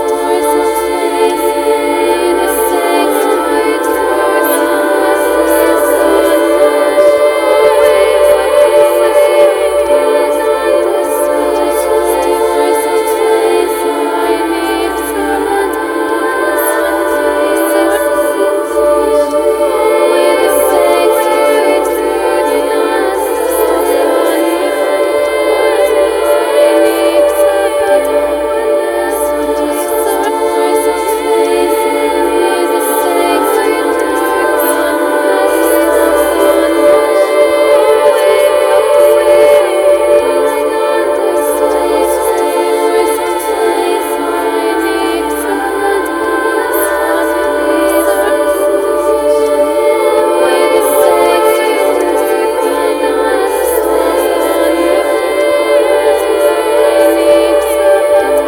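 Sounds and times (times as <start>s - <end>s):
choir singing: 0.0s - 58.4s.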